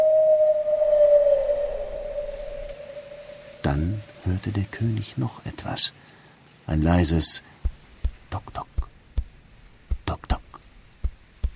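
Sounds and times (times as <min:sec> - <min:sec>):
distant owl hoot: 0:00.0 - 0:04.2
soft hiss: 0:00.0 - 0:11.5
speech: 0:03.7 - 0:06.1, 0:06.7 - 0:07.6.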